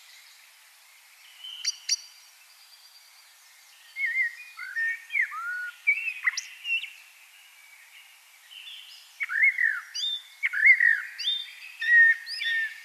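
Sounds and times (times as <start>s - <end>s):
common blackbird singing: 1.2s - 3.0s, 3.7s - 7.0s, 7.8s - 12.8s.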